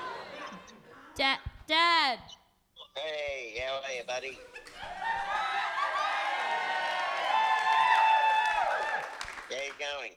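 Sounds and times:
speech: 0:01.2 - 0:02.4, 0:03.0 - 0:06.0
live audience of about 120 people cheering: 0:04.7 - 0:09.6.

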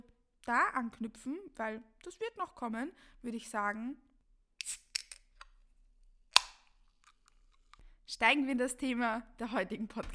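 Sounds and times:
speech: 0:00.5 - 0:04.1, 0:08.1 - 0:10.1
energy drink can being opened: 0:04.6 - 0:05.6, 0:06.3 - 0:07.8.

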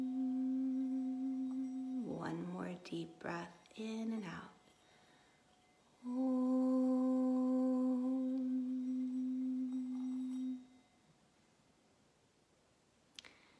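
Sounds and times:
sacred singing bowl bell ringing: 0:00.0 - 0:11.2
speech: 0:02.1 - 0:04.6, 0:06.0 - 0:06.6.

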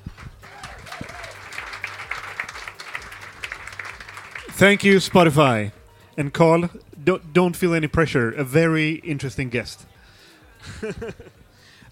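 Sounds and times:
audience applause: 0:00.0 - 0:05.2
speech: 0:04.6 - 0:09.9, 0:10.7 - 0:11.4
laughter: 0:10.6 - 0:11.4.

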